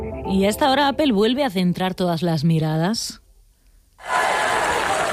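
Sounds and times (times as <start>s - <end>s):
speech: 0.4s - 3.2s
ovation at Apple product presentation: 4.0s - 5.1s.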